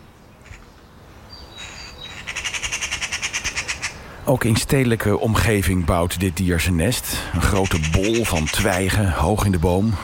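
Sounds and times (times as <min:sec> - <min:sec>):
excited magpie calling: 0:00.4 - 0:00.8, 0:01.4 - 0:04.3, 0:07.4 - 0:09.3
speech: 0:04.2 - 0:10.0.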